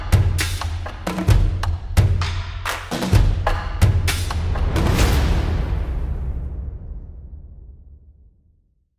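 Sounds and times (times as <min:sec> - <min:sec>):
percussion background music: 0:00.0 - 0:05.9.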